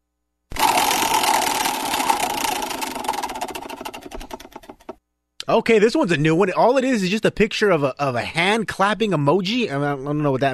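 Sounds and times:
prize wheel spinning with ratcheting clicks: 0.5s - 5.0s
speech: 5.5s - 10.5s.

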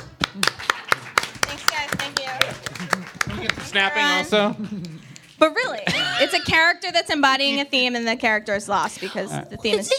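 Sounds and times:
slow clap: 0.0s - 3.7s
speech: 3.7s - 9.9s.

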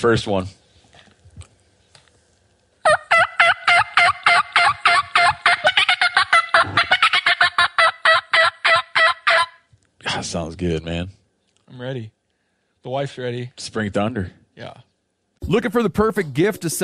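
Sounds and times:
speech: 0.0s - 0.6s, 10.3s - 12.2s, 12.8s - 16.8s
turkey call playing raspy yelps: 2.8s - 9.7s.

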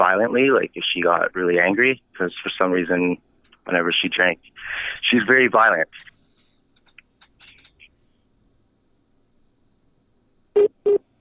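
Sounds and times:
speech: 0.0s - 6.1s, 10.6s - 11.1s
phone beeping from incoming call: 10.6s - 11.0s.

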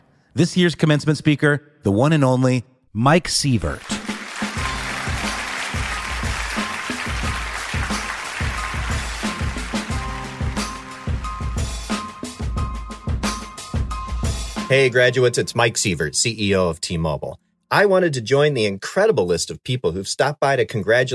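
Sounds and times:
speech: 0.4s - 4.0s, 14.7s - 21.1s
audience clapping for a commencement speaker: 3.6s - 11.2s
thumping rhythmic beat: 3.8s - 15.0s.

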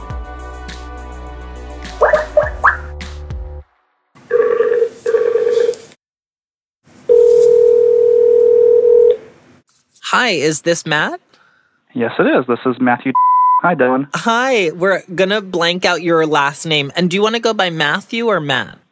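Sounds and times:
telephone dialing: 4.3s - 5.8s, 7.1s - 9.2s
speech: 10.3s - 11.2s, 12.0s - 18.8s.

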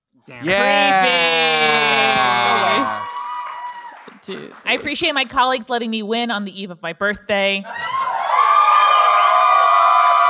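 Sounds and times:
speech: 0.2s - 1.3s, 4.2s - 8.0s
live audience in Austin, Texas cheering: 0.4s - 4.8s, 7.7s - 10.2s.

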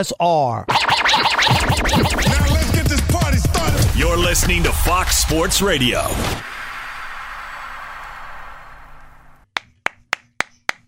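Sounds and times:
speech: 0.0s - 2.6s, 4.0s - 6.5s
crowd cheering: 2.4s - 9.4s
crowd clapping: 6.4s - 10.0s.

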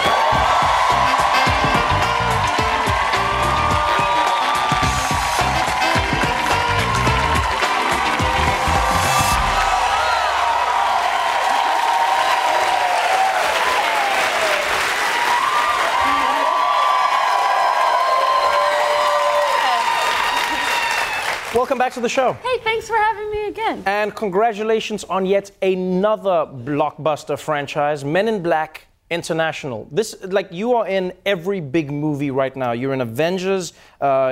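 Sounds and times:
late-night comedy show studio audience clapping for an actor guest: 0.0s - 22.4s
speech: 21.6s - 34.2s.

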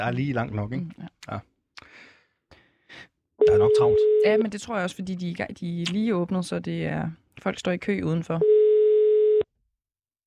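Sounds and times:
speech: 0.0s - 1.5s, 3.5s - 8.5s
telephone ringing tone during a call: 3.4s - 4.4s, 8.4s - 9.5s.

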